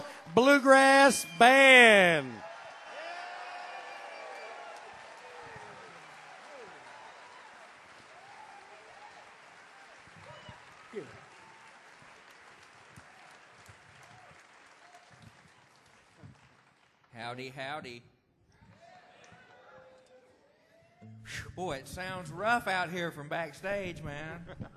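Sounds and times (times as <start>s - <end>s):
people whooping: 0.0s - 11.7s
audience applause at the Carolina Theater, downtown Durham: 0.0s - 17.0s
speech: 0.4s - 2.5s, 17.3s - 18.1s, 21.3s - 24.7s.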